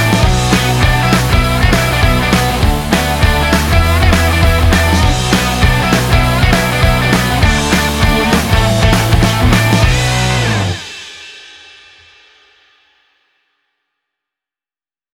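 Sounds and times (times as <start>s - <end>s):
upbeat commercial rock music: 0.0s - 11.1s.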